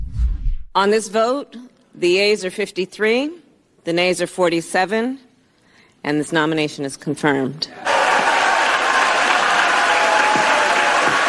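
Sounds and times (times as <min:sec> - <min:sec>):
speech: 0:00.8 - 0:05.3, 0:06.0 - 0:07.8
Mitt Romney cheering: 0:07.8 - 0:11.2.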